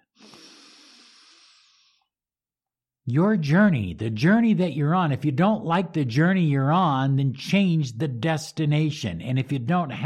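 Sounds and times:
long deep breath: 0.0 - 2.2
speech: 3.1 - 10.0.

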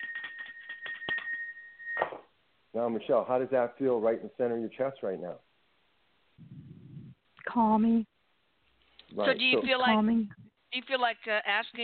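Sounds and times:
bell ringing: 0.0 - 2.0
speech: 2.8 - 5.5, 7.6 - 8.1, 9.1 - 11.8.

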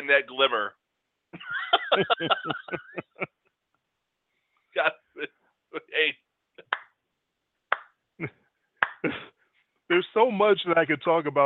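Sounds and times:
speech: 0.1 - 3.4, 4.7 - 6.2, 8.2 - 8.4, 9.0 - 9.3, 9.9 - 11.4
laughter: 1.4 - 3.4
slow hand claps: 6.6 - 7.0, 7.7 - 8.0, 8.8 - 9.2.

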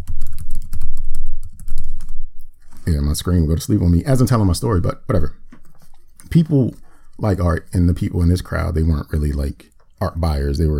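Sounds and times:
typing a password on a computer keyboard: 0.0 - 2.2
speech: 2.9 - 5.4, 6.3 - 10.7.

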